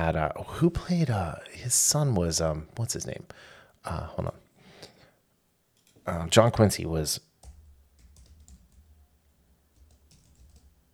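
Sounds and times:
speech: 0.0 - 4.4, 6.1 - 7.3
computer keyboard typing: 7.4 - 9.0, 9.8 - 10.8.

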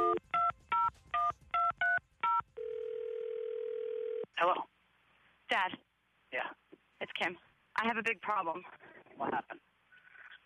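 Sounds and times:
steady continuous tone as the call connects: 0.0 - 4.3
speech: 4.4 - 4.7, 5.5 - 5.8, 7.2 - 9.6.

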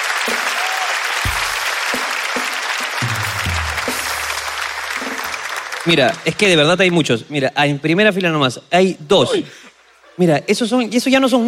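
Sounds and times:
audience applause: 0.0 - 7.1
speech: 5.8 - 9.6, 10.2 - 11.4.

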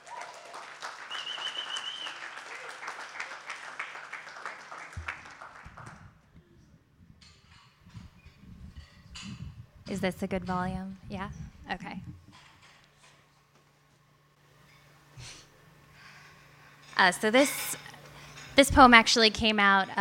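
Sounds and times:
audience round of applause: 0.0 - 6.2
speech: 9.9 - 12.2, 17.0 - 17.7, 18.6 - 20.0.

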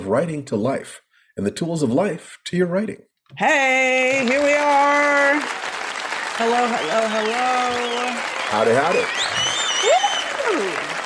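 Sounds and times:
speech: 0.1 - 5.8, 6.4 - 10.8
audience applause: 4.2 - 11.0
high whooping cheers: 5.4 - 11.0.

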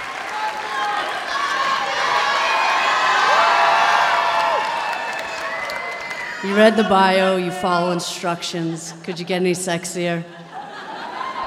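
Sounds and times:
live storytelling audience cheering and screaming: 0.0 - 7.6, 10.6 - 11.4
speech: 6.4 - 10.4
laughter: 6.4 - 11.4.

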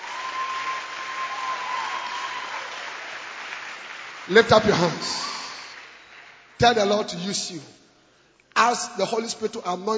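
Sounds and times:
audience clapping hands: 0.0 - 7.1
speech: 4.3 - 5.4, 6.6 - 7.8, 8.6 - 9.9.

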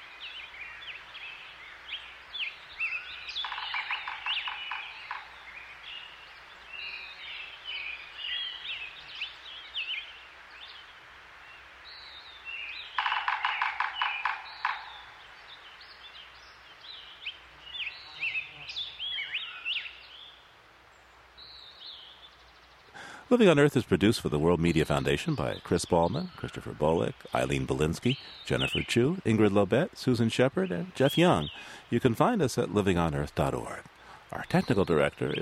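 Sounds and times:
birdsong in the high Sierras: 0.0 - 35.3
woodpeckers drumming in the high Sierras: 3.3 - 5.6, 12.8 - 15.4, 22.9 - 35.3
speech: 23.3 - 35.3.

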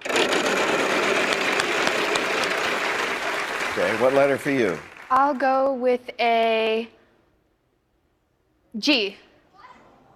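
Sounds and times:
game show prize wheel spinning and clicking: 0.0 - 3.2
speech: 3.8 - 7.0, 8.7 - 9.2.

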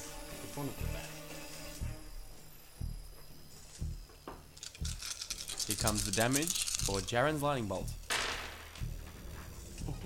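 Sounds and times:
speech: 0.6 - 1.2, 5.8 - 8.0
many dice rolling on a table: 4.6 - 7.2, 8.1 - 8.9.

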